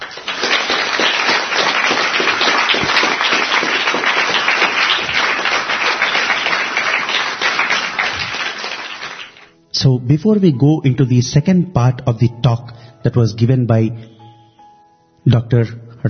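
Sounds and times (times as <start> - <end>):
audience applause: 0.0 - 9.5
speech: 9.8 - 14.1, 15.2 - 16.0.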